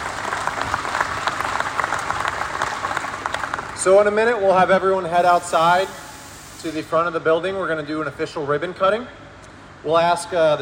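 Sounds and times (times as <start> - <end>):
audience applause: 0.0 - 4.0
speech: 3.8 - 6.0, 6.6 - 9.2, 9.8 - 10.6.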